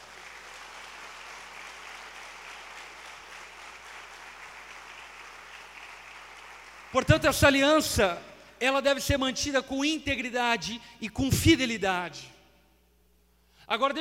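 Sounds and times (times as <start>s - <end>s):
audience applauding: 0.0s - 7.2s
speech: 6.9s - 12.4s, 13.7s - 13.9s.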